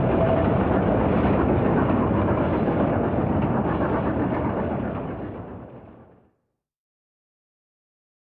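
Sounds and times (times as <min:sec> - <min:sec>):
Rio Grande Western steam locomotive at a station: 0:00.0 - 0:06.3.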